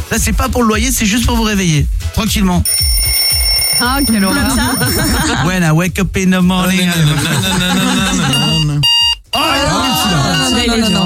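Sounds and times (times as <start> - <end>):
speech: 0.1 - 3.2, 3.8 - 8.7, 9.4 - 11.0
alarm clock ringing: 2.7 - 5.3, 8.1 - 11.0
laughter: 4.2 - 5.6, 6.6 - 11.0.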